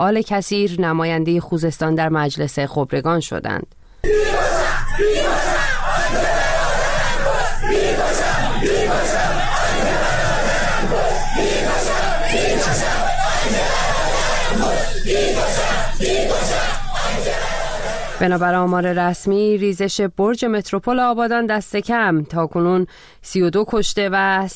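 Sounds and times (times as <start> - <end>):
speech: 0.0 - 4.4, 5.0 - 6.2, 18.2 - 24.5
protesters chanting slogans: 4.0 - 18.4.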